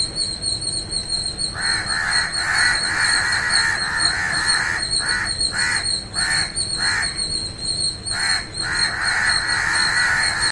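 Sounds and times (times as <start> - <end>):
bird cawing: 1.4 - 7.3, 8.1 - 10.4.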